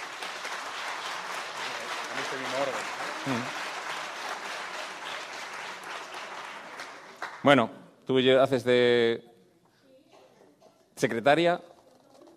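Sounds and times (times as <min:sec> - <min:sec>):
audience applause: 0:00.0 - 0:07.5
speech: 0:02.3 - 0:03.6, 0:07.4 - 0:09.3, 0:11.0 - 0:11.7.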